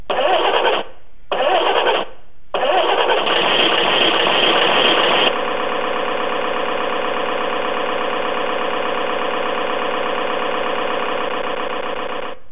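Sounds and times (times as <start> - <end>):
engine: 0.1 - 12.4.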